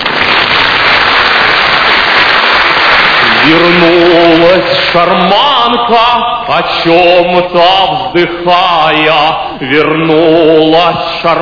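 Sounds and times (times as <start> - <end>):
loud crowd applause: 0.0 - 5.1
speech: 3.5 - 11.4.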